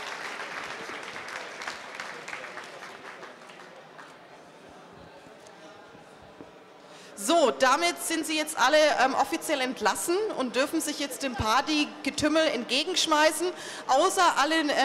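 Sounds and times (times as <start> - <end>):
audience applause: 0.0 - 4.3
speech: 7.2 - 14.8.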